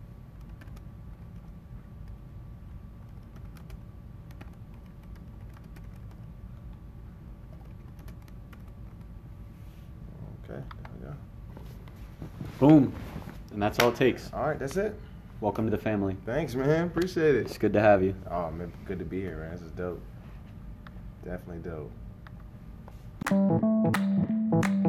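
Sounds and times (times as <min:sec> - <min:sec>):
low hum: 0:00.0 - 0:24.8
typing a full name on a computer keyboard: 0:00.4 - 0:02.2, 0:03.1 - 0:06.2, 0:07.5 - 0:09.1
speech: 0:12.6 - 0:13.0, 0:13.6 - 0:20.1, 0:21.2 - 0:22.0, 0:23.3 - 0:24.8.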